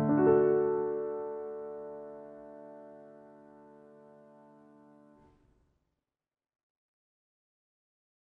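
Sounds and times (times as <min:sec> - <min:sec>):
piano: 0:00.0 - 0:05.4.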